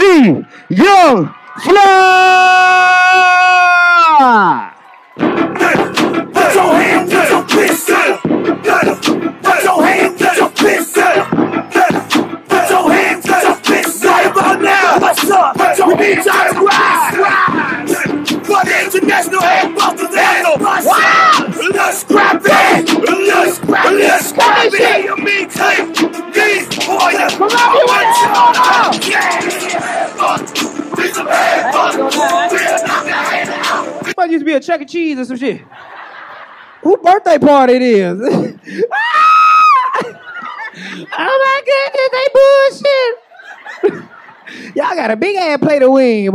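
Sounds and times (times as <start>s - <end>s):
live comedy show audience in Columbia South Carolina cheering and yelling: 0.0s - 34.2s
speech: 0.2s - 3.0s, 18.5s - 36.0s, 36.8s - 39.3s, 40.8s - 43.2s, 43.8s - 46.3s
laughter: 31.3s - 33.5s, 35.6s - 37.2s, 38.2s - 42.0s, 43.1s - 44.8s.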